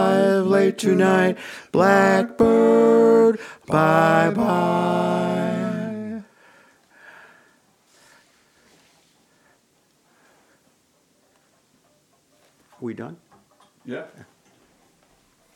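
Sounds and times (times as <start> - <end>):
person singing: 0.0 - 6.3.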